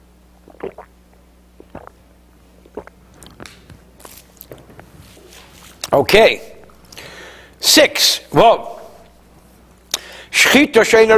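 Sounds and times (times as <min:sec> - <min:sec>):
person drinking a sip of water: 0:00.4 - 0:06.0
speech: 0:05.9 - 0:06.5, 0:07.7 - 0:08.7, 0:10.5 - 0:11.1.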